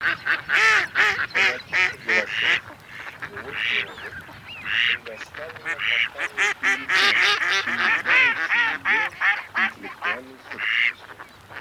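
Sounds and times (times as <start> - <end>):
mallard: 0.0 - 11.5.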